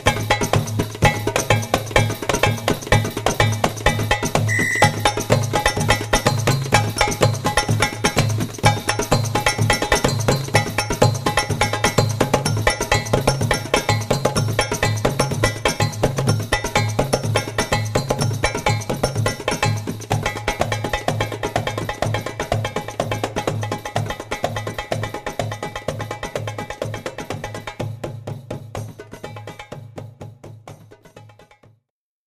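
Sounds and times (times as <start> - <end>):
tabla solo: 0.2 - 31.6.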